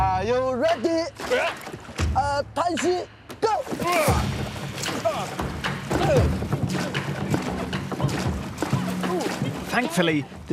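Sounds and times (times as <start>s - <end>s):
speech: 0.2s - 6.8s, 9.1s - 10.5s
rowing crew pulling oars through the water during boat race practice: 1.2s - 2.2s, 3.4s - 10.5s.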